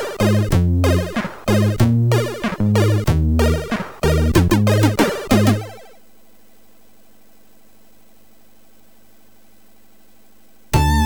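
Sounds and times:
MOS6581R4 chip synthesizer bass: 0.2 - 5.9, 10.8 - 11.0.

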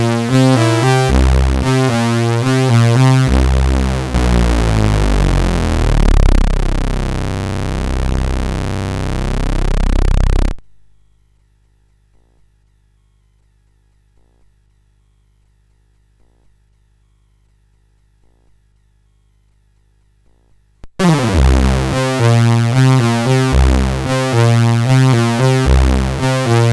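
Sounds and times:
funk rock music on CSG8580R5: 0.0 - 10.5, 21.0 - 26.7.

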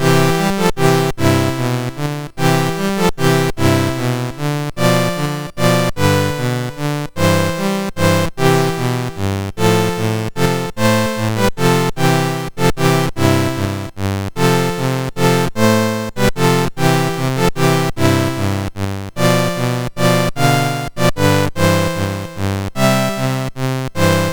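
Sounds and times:
MOS6581R4 chiptune music: 0.0 - 24.3.

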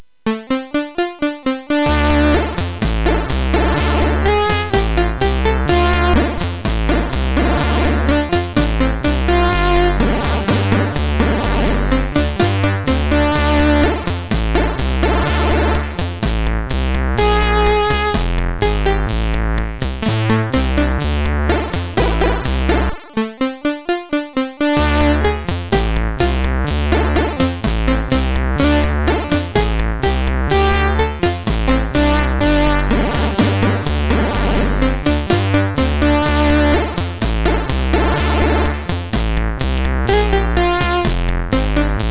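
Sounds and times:
funk music: 0.4 - 42.1.

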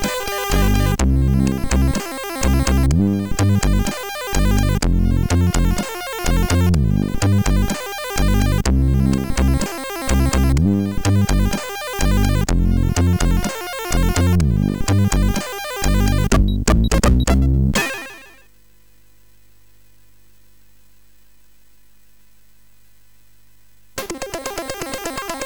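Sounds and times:
simple melody on MOS6581R4: 0.5 - 18.4.

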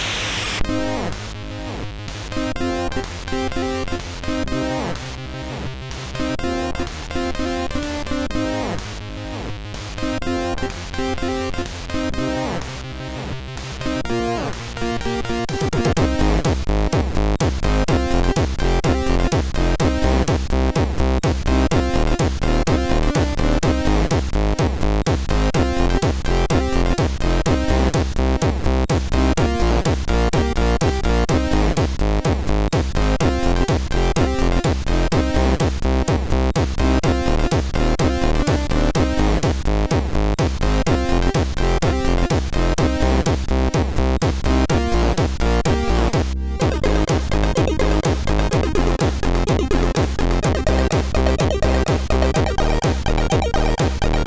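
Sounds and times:
trance music on a SID MOS6581R3 chip: 0.2 - 54.2.

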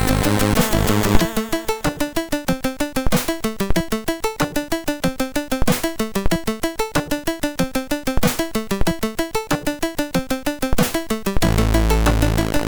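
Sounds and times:
chiptune intro music on a MOS6581R3 SID chip: 0.0 - 3.3, 4.1 - 12.6.

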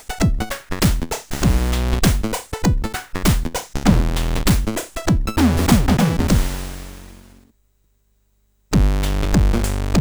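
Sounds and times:
funk music: 0.0 - 6.6, 8.8 - 9.9.

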